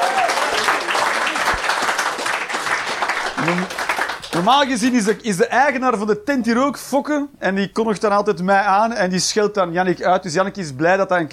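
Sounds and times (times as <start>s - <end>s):
audience applause in a bar venue: 0.0s - 5.0s
speech: 3.5s - 11.3s.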